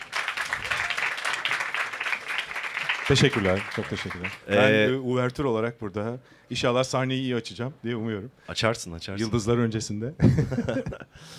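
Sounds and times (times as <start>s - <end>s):
audience applause: 0.0s - 4.6s
speech: 3.1s - 11.3s
laughter: 10.2s - 11.1s.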